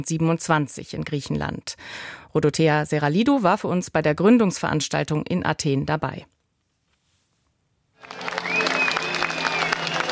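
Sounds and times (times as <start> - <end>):
speech: 0.0 - 6.4
crowd applause at rally: 8.0 - 10.1
high whistle: 8.2 - 10.1.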